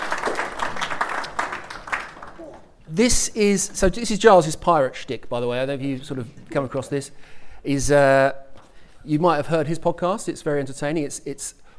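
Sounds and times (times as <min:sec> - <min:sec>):
audience applause greeting two speakers on stage: 0:00.0 - 0:02.8
speech: 0:02.9 - 0:08.4, 0:09.0 - 0:11.6.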